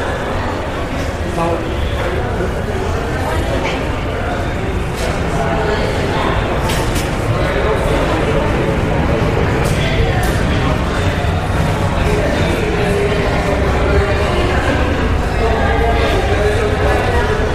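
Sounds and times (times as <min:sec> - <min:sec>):
murmur of passengers in an airport terminal: 0:00.0 - 0:17.5.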